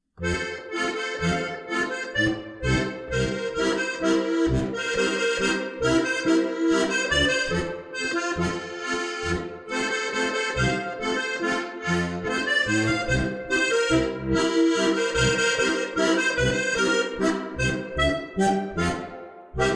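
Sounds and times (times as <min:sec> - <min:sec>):
waltz music: 0:00.2 - 0:19.7.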